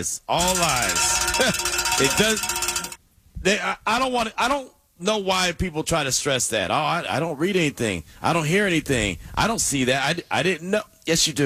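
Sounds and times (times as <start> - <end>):
speech: 0.0 - 2.6, 3.4 - 11.4
bell ringing: 0.4 - 3.0.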